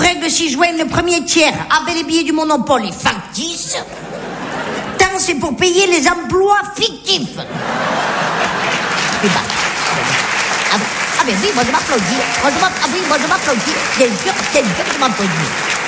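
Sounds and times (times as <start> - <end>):
speech: 0.3 - 4.4, 5.0 - 8.2, 9.2 - 10.2, 10.8 - 15.8
laughter: 3.8 - 5.0, 7.4 - 15.8
applause: 8.2 - 15.8.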